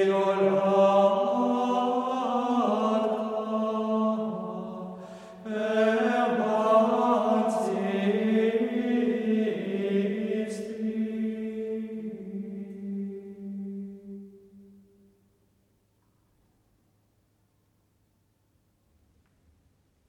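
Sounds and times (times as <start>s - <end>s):
choir singing a motet: 0.0s - 15.0s.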